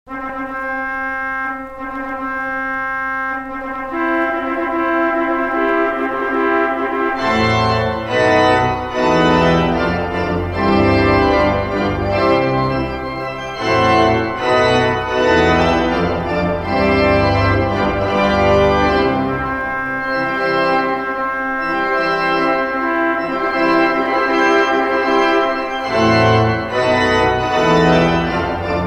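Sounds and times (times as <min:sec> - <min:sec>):
wedding march music: 0:00.1 - 0:28.8.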